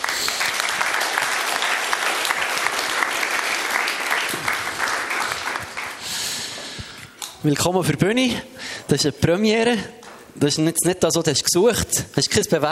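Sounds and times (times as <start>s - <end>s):
audience applause: 0.0s - 6.6s
speech: 7.4s - 12.7s.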